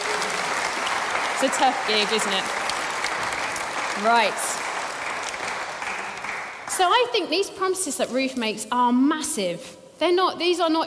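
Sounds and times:
audience applause: 0.0s - 6.8s
speech: 1.4s - 2.6s, 4.0s - 4.5s, 6.8s - 10.8s.

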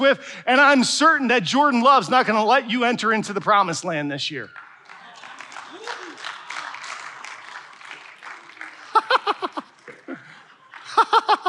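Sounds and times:
speech: 0.0s - 4.6s
audience clapping: 3.3s - 11.4s
laughter: 4.9s - 11.4s.

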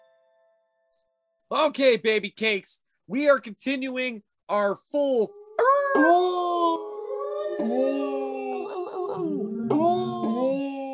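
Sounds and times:
speech: 1.5s - 6.3s
several wolves howling together: 6.8s - 9.8s.

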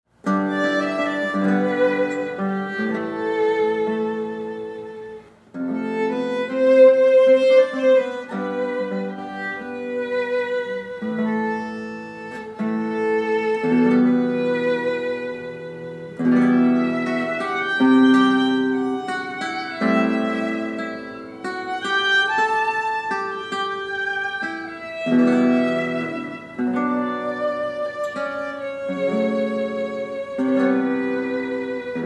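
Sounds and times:
violin playing a guitar arrangement: 0.2s - 32.0s.

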